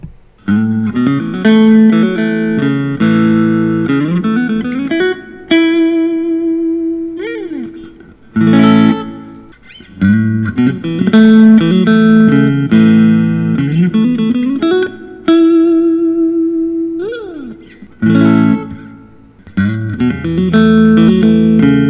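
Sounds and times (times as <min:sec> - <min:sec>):
Suhr Classic SSH: 0:00.0 - 0:21.8.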